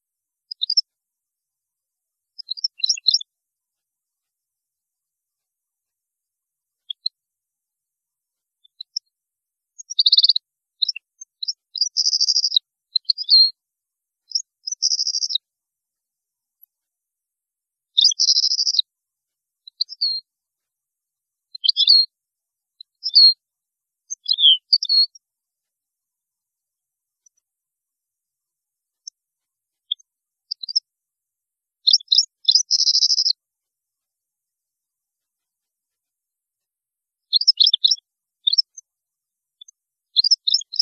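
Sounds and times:
European goldfinch song: 2.4 - 3.3, 9.8 - 13.5, 14.3 - 15.4, 18.0 - 18.9, 21.6 - 22.0, 24.1 - 25.2, 29.8 - 30.8, 31.9 - 33.4, 37.3 - 38.7, 40.2 - 40.8.

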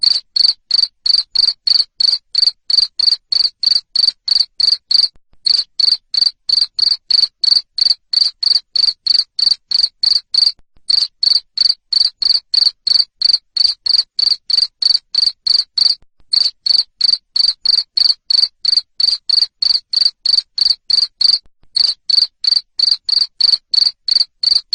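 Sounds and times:
cricket chirping: 0.0 - 24.7.

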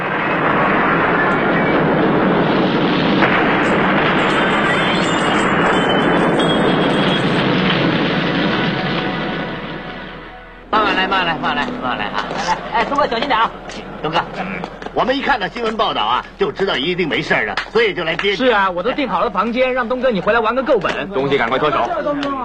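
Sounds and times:
gas explosion: 0.0 - 17.0
speech: 13.1 - 22.4.

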